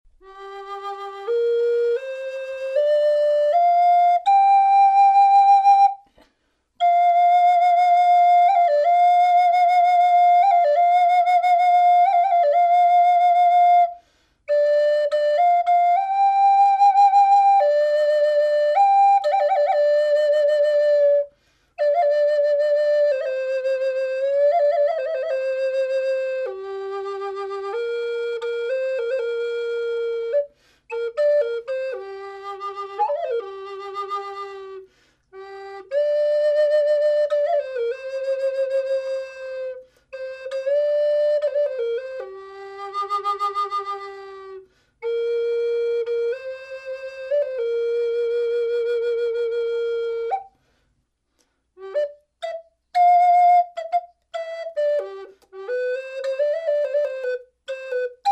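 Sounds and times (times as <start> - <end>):
natural flute: 0.1 - 58.3.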